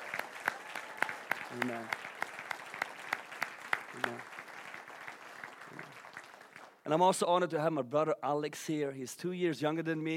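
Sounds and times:
audience applause: 0.0s - 6.8s
speech: 1.5s - 2.1s, 4.0s - 4.3s, 6.9s - 10.1s.

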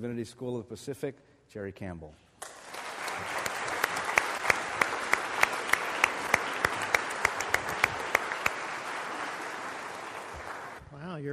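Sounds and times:
speech: 0.0s - 2.5s
church congregation applauding a guest speaker: 2.4s - 10.8s.

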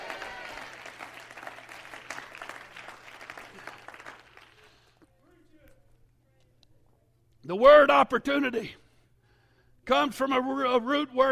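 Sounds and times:
audience clapping and shouting: 0.0s - 4.9s
speech: 7.5s - 8.8s, 9.9s - 11.3s.

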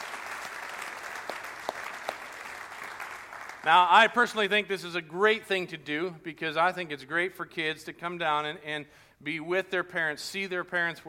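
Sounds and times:
crowd round of applause: 0.0s - 3.9s
speech: 3.6s - 11.0s.

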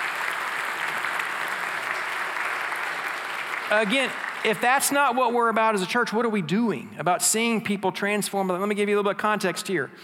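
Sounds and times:
church audience applause: 0.0s - 5.2s
speech: 3.7s - 10.0s.

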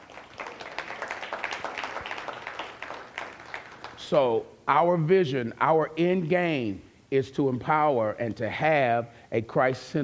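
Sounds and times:
audience applause: 0.0s - 4.0s
speech: 4.1s - 10.0s.

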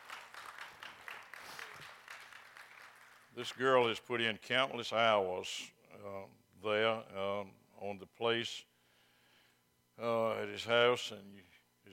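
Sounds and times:
audience applause: 0.0s - 3.8s
speech: 3.4s - 8.7s, 10.0s - 11.9s.

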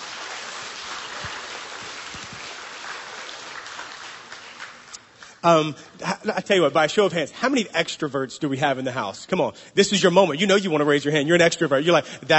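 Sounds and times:
audience clapping: 0.0s - 5.5s
speech: 5.4s - 12.3s.

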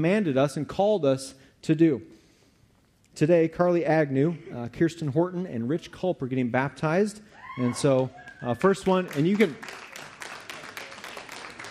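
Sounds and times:
speech: 0.0s - 2.2s, 3.2s - 9.8s
audience clapping: 8.1s - 11.7s.

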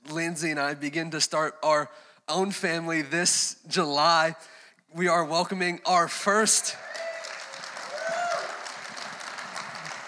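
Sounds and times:
speech: 0.3s - 7.1s
audience applauding excitedly: 6.4s - 10.0s
person cheering: 6.4s - 10.0s.

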